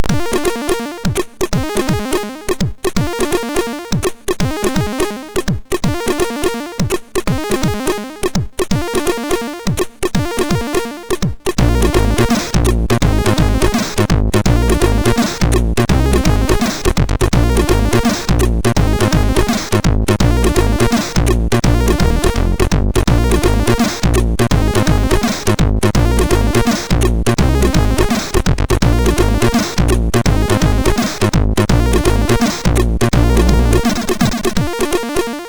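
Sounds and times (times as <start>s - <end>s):
short funk chiptune on MOS6581R2 SID chip: 0.0s - 35.4s.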